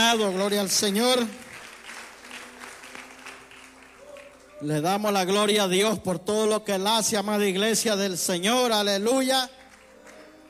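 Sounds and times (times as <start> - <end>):
speech: 0.0 - 1.4, 4.6 - 9.6
church congregation clapping after a service: 0.0 - 5.6, 8.4 - 10.4.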